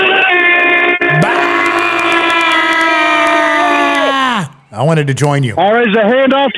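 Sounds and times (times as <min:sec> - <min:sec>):
football crowd yelling on third down: 0:01.1 - 0:04.7
speech: 0:04.8 - 0:06.5.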